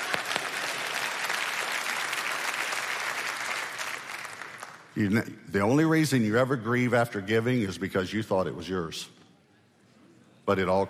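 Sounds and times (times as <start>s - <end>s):
audience clapping: 0.0s - 5.1s
speech: 5.0s - 9.2s, 10.5s - 10.8s.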